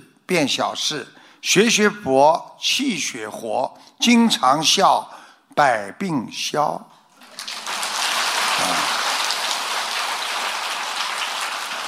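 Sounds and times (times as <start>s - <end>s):
speech: 0.3s - 6.9s
crowd clapping: 7.2s - 11.8s.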